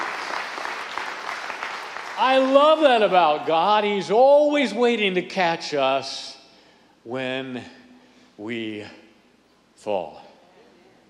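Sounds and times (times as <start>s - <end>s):
audience clapping: 0.0s - 3.5s
speech: 2.2s - 6.4s, 7.0s - 7.8s, 8.4s - 9.0s, 9.8s - 10.2s.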